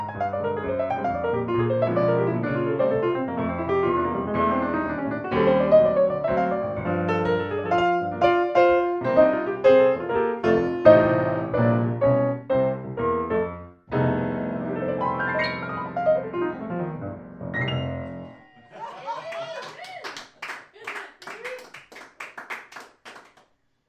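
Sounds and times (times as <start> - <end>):
blues music: 0.0 - 18.7
laughter: 18.3 - 20.1.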